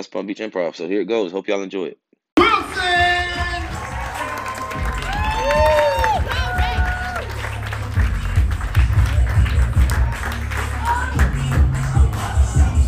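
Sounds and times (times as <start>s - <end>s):
speech: 0.0s - 2.0s
audience clapping: 2.4s - 12.7s
whoops and raised voices: 3.7s - 7.4s.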